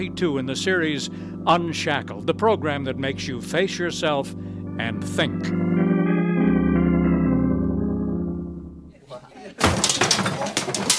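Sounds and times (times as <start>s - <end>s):
speech: 0.0s - 5.7s
organ-like music: 0.0s - 9.0s
objects clattering and tumbling: 9.6s - 10.9s.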